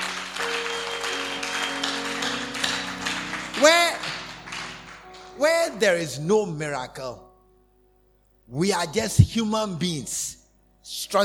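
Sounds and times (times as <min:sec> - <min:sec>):
crowd clapping: 0:00.0 - 0:05.5
speech: 0:05.8 - 0:07.3, 0:08.5 - 0:11.2.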